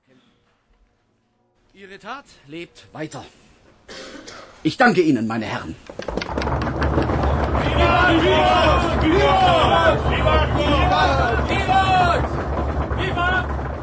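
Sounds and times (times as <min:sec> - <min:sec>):
speech: 0:01.8 - 0:03.4, 0:04.6 - 0:06.6
audience banging on desks: 0:05.8 - 0:13.8
audience shouting vivat in unison: 0:07.5 - 0:12.2.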